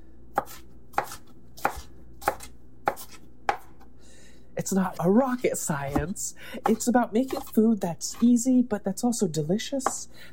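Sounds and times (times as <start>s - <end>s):
knife mincing food into coarse slices: 0.3s - 3.9s, 4.7s - 8.4s, 9.8s - 10.0s
speech: 4.7s - 10.3s.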